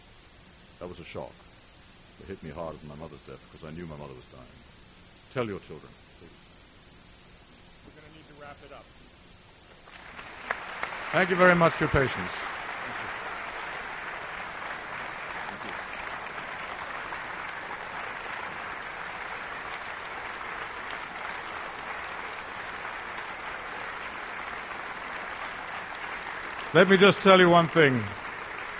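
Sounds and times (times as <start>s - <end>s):
speech: 0.8s - 1.4s, 2.2s - 4.7s, 5.3s - 6.4s, 8.4s - 9.0s, 11.1s - 12.5s, 26.7s - 28.2s
people applauding a talk: 9.8s - 28.7s.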